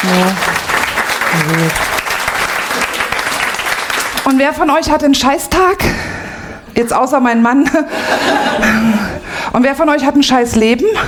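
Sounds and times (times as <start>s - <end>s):
audience clapping: 0.0s - 4.8s
speech: 1.3s - 1.9s, 4.3s - 6.1s, 6.8s - 11.0s
laughter: 7.6s - 9.2s.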